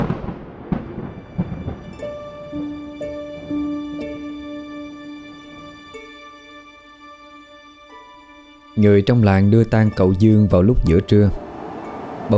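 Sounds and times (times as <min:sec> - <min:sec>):
rumbling thunder: 0:00.0 - 0:02.4
speech: 0:08.8 - 0:11.4.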